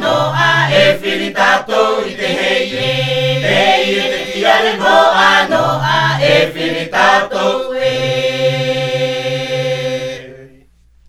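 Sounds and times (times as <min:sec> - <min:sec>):
himene tarava choral singing from Tahiti: 0:00.0 - 0:10.7.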